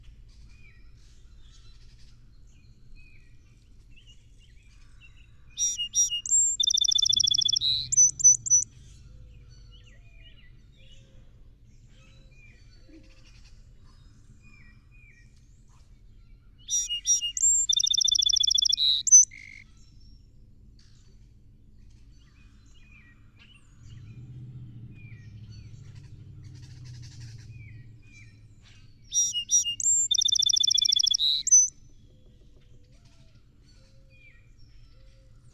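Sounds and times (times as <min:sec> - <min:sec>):
faint low hum: 0:00.0 - 0:35.5
song sparrow singing: 0:00.4 - 0:15.3, 0:16.3 - 0:20.3, 0:22.1 - 0:35.5.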